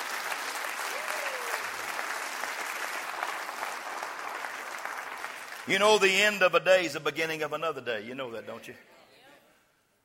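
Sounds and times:
audience applause: 0.0 - 6.1
speech: 5.7 - 9.0.

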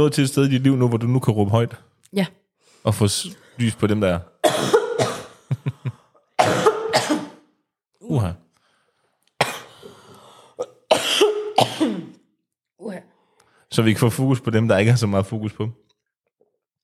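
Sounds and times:
speech: 0.0 - 4.8, 8.1 - 8.4, 13.8 - 15.9
coughing and throat clearing: 4.4 - 7.6, 9.4 - 9.9, 10.5 - 12.3.

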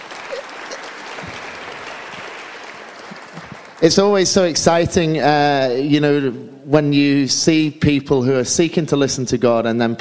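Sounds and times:
audience round of applause: 0.0 - 4.5
speech: 3.8 - 9.9.

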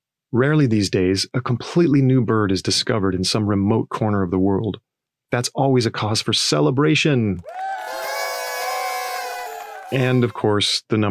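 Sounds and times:
speech: 0.3 - 7.8, 9.9 - 11.0
crowd cheering loudly in celebration: 7.4 - 10.6.

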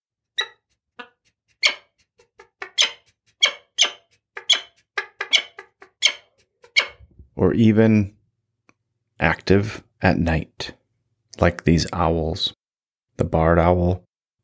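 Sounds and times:
peregrine falcon shrieking: 2.6 - 7.0
speech: 7.4 - 8.2, 9.2 - 10.8, 11.4 - 12.6, 13.2 - 14.1.

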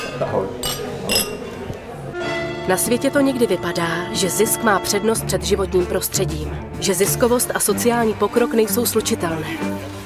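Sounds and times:
glasses clinking in a toast: 0.0 - 1.7
speech: 2.7 - 10.0.

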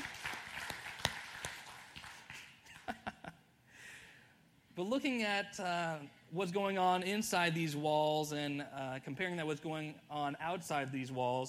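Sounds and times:
audience clapping: 0.0 - 3.1
speech: 4.8 - 11.4.

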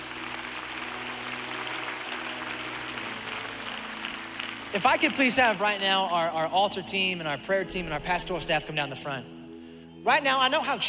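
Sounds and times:
crowd applauding: 0.0 - 6.6
speech: 4.7 - 9.4, 10.0 - 10.8.

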